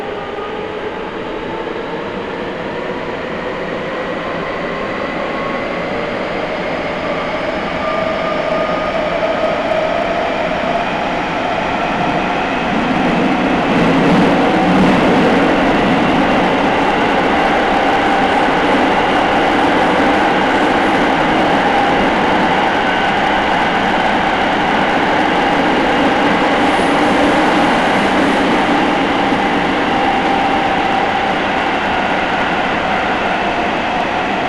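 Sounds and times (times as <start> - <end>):
Nagoya Municipal Subway Sakura-dori Line train rushing roar: 0.0 - 34.4.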